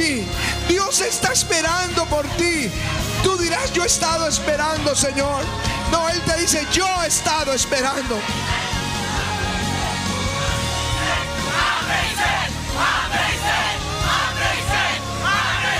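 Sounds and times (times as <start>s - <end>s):
speech: 0.0s - 8.8s
crowd shouting: 7.4s - 15.7s.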